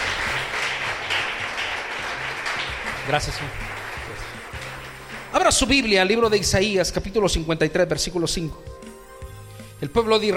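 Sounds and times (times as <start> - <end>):
church congregation clapping during a Spanish-language service: 0.0 - 6.4
speech: 3.1 - 3.7, 5.4 - 8.7, 9.8 - 10.3.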